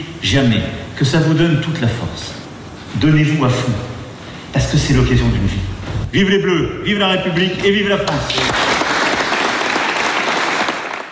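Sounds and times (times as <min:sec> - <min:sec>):
speech: 0:00.0 - 0:03.9, 0:04.5 - 0:08.6
applause after a speech: 0:08.1 - 0:11.1.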